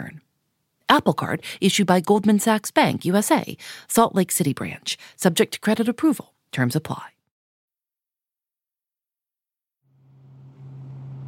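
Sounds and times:
speech: 0.9 - 7.2
bus driving around the island: 9.9 - 11.2.

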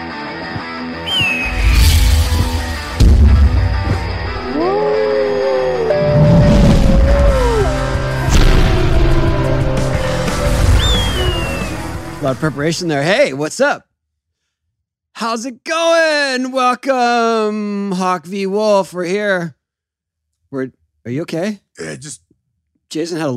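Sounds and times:
car crash sound effect: 1.4 - 4.2, 6.1 - 12.2
sliding screeching tones: 4.3 - 12.2
speech: 12.3 - 13.9, 15.2 - 19.6, 20.5 - 22.2, 22.9 - 23.3.

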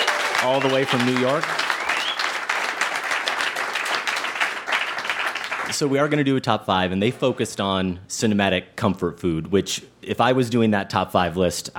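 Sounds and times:
crowd applauding: 0.0 - 5.8
speech: 0.4 - 1.6, 5.7 - 11.7.

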